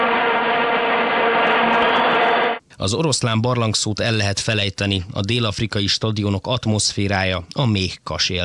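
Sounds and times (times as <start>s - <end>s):
many vuvuzela horns blaring together: 0.0s - 2.6s
speech: 2.8s - 8.4s.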